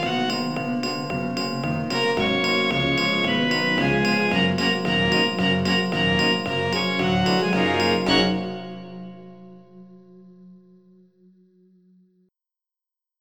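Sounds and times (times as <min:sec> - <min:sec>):
jingle: 0:00.0 - 0:09.8.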